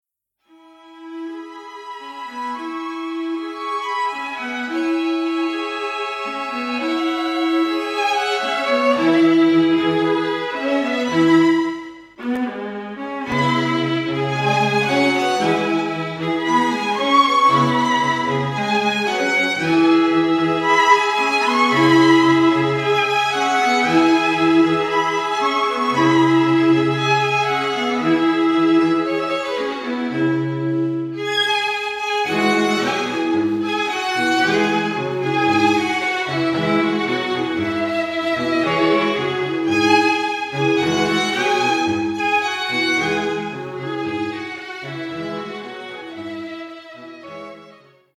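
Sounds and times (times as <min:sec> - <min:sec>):
strings: 0:00.5 - 0:48.1.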